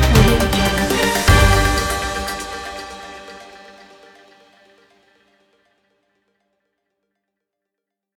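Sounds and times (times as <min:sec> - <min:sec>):
primetime breaking news music: 0:00.0 - 0:04.4.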